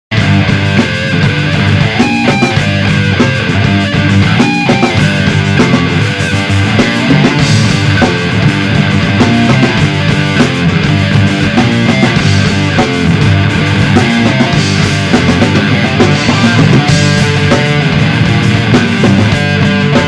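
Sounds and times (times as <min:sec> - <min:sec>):
riff: 0:00.1 - 0:20.0.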